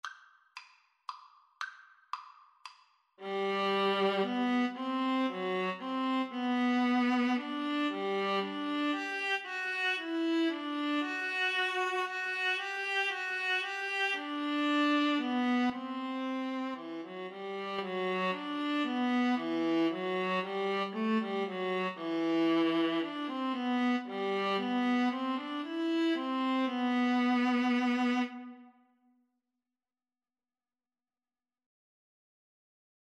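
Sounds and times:
violin and viola duet: 3.2 - 28.7.

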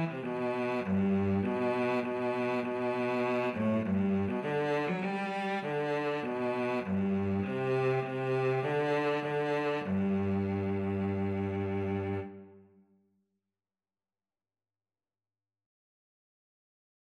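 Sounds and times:
cello duet: 0.0 - 12.6.

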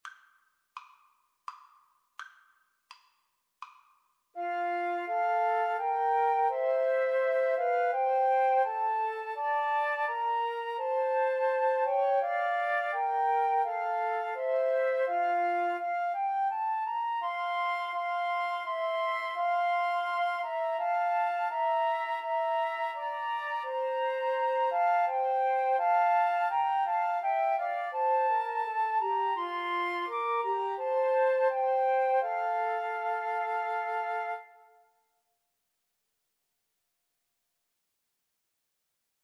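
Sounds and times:
flute trio playing: 4.4 - 34.8.

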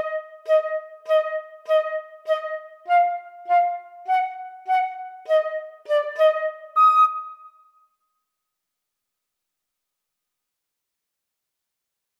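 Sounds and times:
flute and clarinet duet: 0.0 - 7.5.

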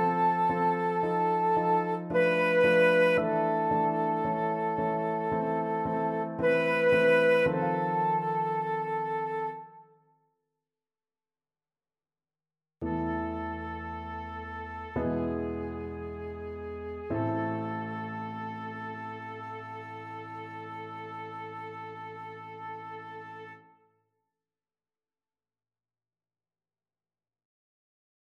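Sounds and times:
flute playing a prelude: 0.0 - 10.0, 12.8 - 23.8.

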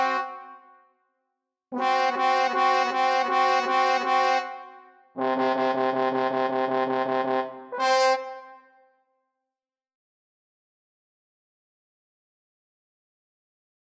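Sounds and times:
trombone trio playing: 1.8 - 4.6, 5.2 - 8.4.

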